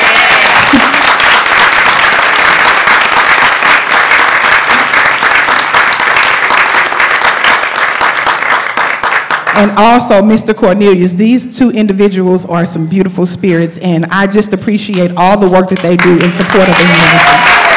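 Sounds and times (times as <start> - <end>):
audience applause: 0.0 - 9.6, 16.0 - 17.7
speech: 9.6 - 17.7.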